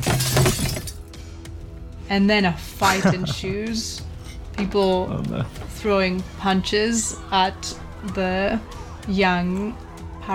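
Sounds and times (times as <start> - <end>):
table flipped over crashing: 0.0 - 1.0
glass shattering: 0.0 - 1.1
speech: 2.1 - 10.3
laughter: 2.8 - 3.8.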